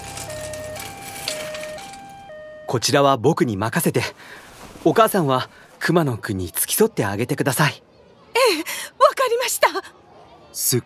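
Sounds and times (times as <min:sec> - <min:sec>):
ambulance siren arriving: 0:00.0 - 0:03.0
speech: 0:02.7 - 0:08.8, 0:09.5 - 0:10.0, 0:10.6 - 0:10.8.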